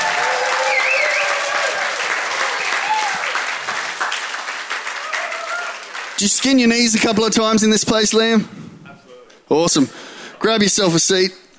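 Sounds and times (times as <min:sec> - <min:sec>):
audience clapping welcoming a speaker to the stage: 0:00.0 - 0:07.4
whistle: 0:00.6 - 0:01.4
speech: 0:06.2 - 0:08.6, 0:09.5 - 0:11.4.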